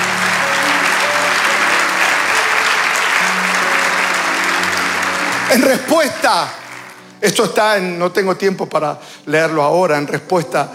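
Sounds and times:
audience applause: 0.0 - 7.6
speech: 5.5 - 6.6, 7.2 - 10.7.

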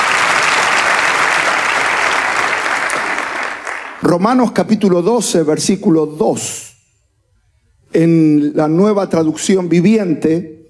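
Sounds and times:
audience applause: 0.0 - 4.0
speech: 4.1 - 6.7, 7.9 - 10.6.

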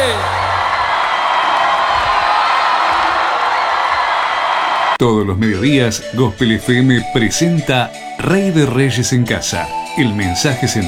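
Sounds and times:
audience applause: 0.0 - 5.0
speech: 5.0 - 10.8.

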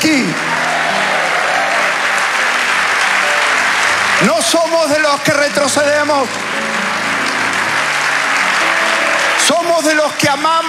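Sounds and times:
audience applause: 0.0 - 10.6
speech: 4.2 - 6.4, 9.5 - 10.6.

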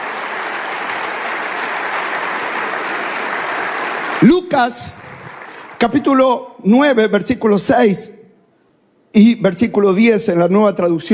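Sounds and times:
audience applauding: 0.0 - 6.2
speech: 4.2 - 5.0, 5.8 - 8.2, 9.1 - 11.1.

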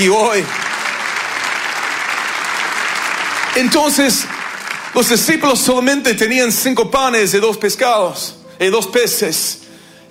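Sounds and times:
speech: 0.0 - 0.6, 3.6 - 10.0
church congregation applauding: 0.0 - 7.2.

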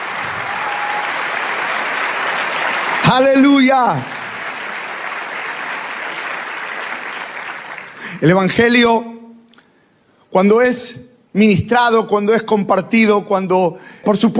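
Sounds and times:
applause: 0.0 - 8.4
speech: 3.1 - 4.1, 8.2 - 9.1, 10.3 - 14.3.

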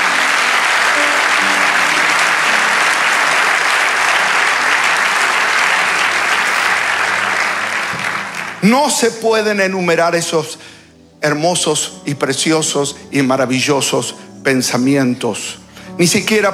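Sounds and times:
audience applauding: 0.0 - 9.2
speech: 8.6 - 10.6, 11.2 - 16.5.

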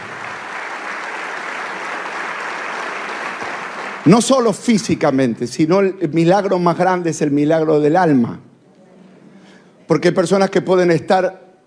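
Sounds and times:
audience applause: 0.0 - 4.5
speech: 4.0 - 8.5, 9.9 - 11.4.

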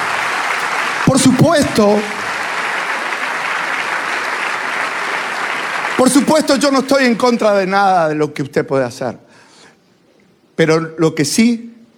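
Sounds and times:
audience applause: 0.0 - 7.1
speech: 1.2 - 2.2, 6.0 - 9.2, 10.6 - 11.8.

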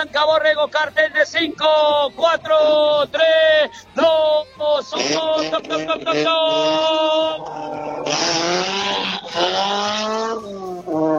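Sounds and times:
speech: 0.0 - 11.1
rally car number 4 launching at the start of a special stage: 4.7 - 11.1
rally car tire squeal: 4.8 - 11.1.

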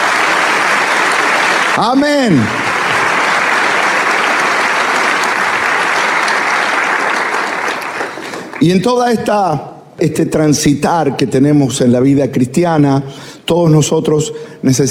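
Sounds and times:
audience applauding: 0.0 - 9.0
speech: 1.8 - 2.6, 8.6 - 14.8.

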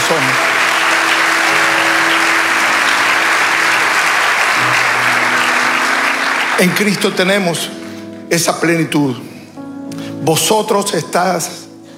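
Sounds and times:
audience applause: 0.0 - 8.0
speech: 6.6 - 11.6.

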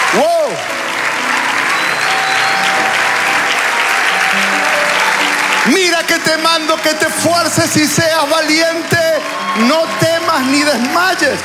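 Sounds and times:
audience applause: 0.0 - 11.4
speech: 0.2 - 0.9, 5.6 - 11.4.

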